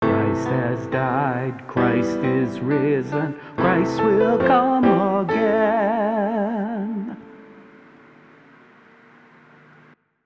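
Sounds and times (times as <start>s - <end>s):
liturgical vocal: 0.0s - 7.4s.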